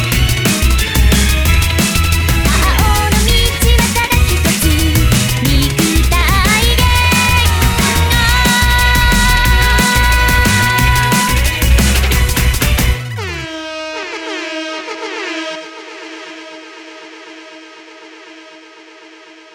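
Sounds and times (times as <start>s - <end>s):
drum and bass remix: 0.0s - 14.0s.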